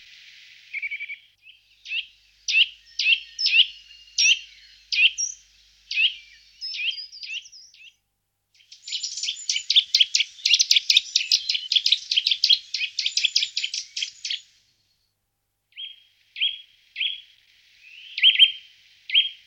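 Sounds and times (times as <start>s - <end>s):
Eurasian nuthatch whistles: 0.8s - 7.9s, 8.6s - 14.5s, 17.8s - 19.4s.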